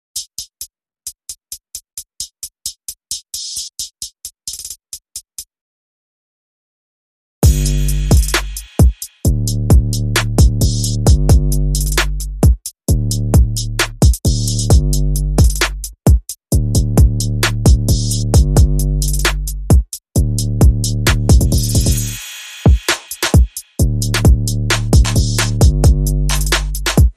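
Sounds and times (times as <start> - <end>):
drums: 0.2 - 5.5, 7.4 - 27.1
bass: 7.4 - 16.0, 16.6 - 22.2, 23.8 - 27.1.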